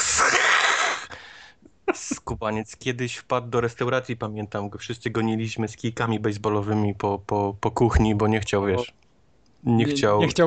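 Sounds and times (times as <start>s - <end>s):
person imitating a cat's hiss: 0.0s - 1.2s
speech: 2.4s - 9.0s, 9.6s - 10.4s.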